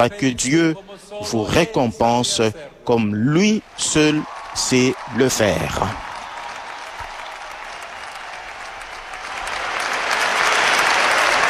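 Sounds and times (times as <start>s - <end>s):
speech: 0.0s - 6.1s
thunderous applause from a crowd: 3.7s - 11.4s.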